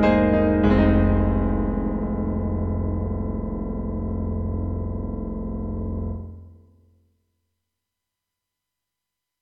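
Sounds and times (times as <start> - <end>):
synthesizer piano 16-foot patch: 0.0 - 6.6.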